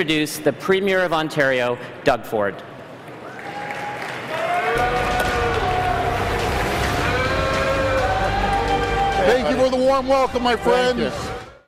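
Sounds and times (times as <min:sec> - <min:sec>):
speech: 0:00.0 - 0:02.7, 0:09.3 - 0:11.3
conference crowd booing Ontario Premier Doug Ford: 0:03.2 - 0:11.6.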